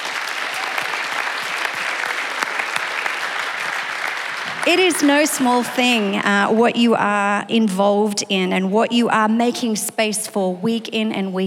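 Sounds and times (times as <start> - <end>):
audience applause: 0.0 - 6.3
speech: 4.7 - 11.4.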